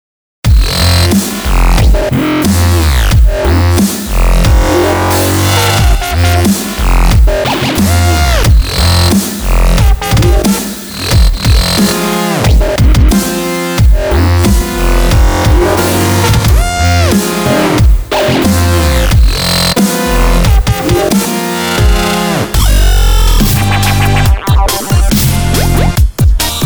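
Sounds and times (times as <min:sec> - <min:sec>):
funkstep music: 0:00.5 - 0:26.6.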